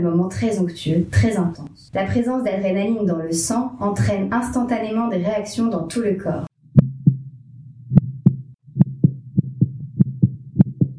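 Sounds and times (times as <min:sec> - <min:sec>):
speech: 0:00.0 - 0:06.5
soft steady hum: 0:00.0 - 0:10.9
heartbeat lub-dub thumps: 0:06.6 - 0:10.9.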